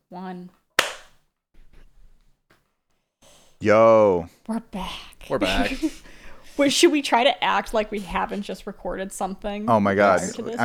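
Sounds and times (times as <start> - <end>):
speech: 0.1 - 0.6, 3.6 - 10.6
single hand clap for audio sync: 0.8 - 1.2
laughter: 5.3 - 6.7, 9.8 - 10.6.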